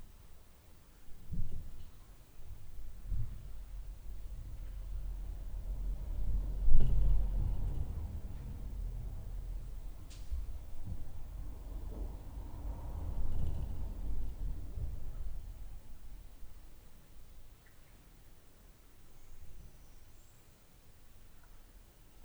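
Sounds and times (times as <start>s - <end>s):
upstairs noise at night: 1.3s - 16.4s.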